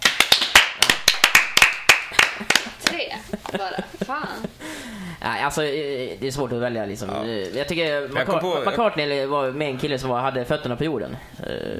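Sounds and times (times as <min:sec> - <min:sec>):
small audience clapping to vote: 0:00.0 - 0:03.0
speech: 0:03.3 - 0:11.7.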